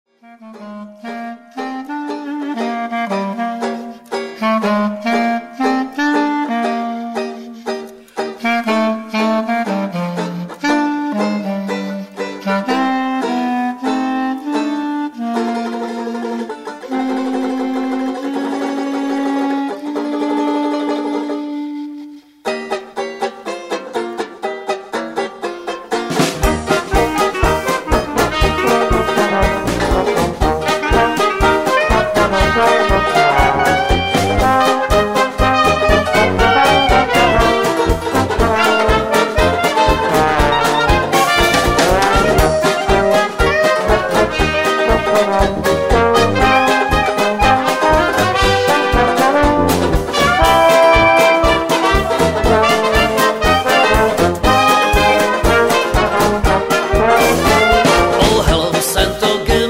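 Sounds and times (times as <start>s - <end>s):
dixieland jazz: 0.2s - 59.6s.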